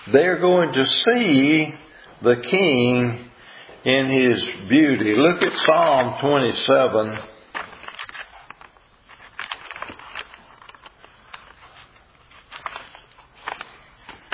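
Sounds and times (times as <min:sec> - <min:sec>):
speech: 0:00.1 - 0:07.3
book pages turning with paper rustling: 0:05.0 - 0:14.3.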